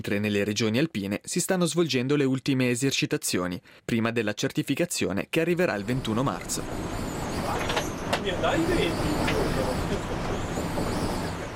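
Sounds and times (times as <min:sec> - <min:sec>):
speech: 0:00.0 - 0:09.5
helicopter rotor wind: 0:05.8 - 0:11.5.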